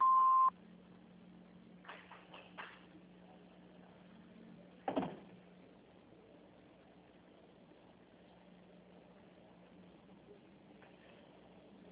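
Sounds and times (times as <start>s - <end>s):
answering machine beep: 0.0s - 0.5s.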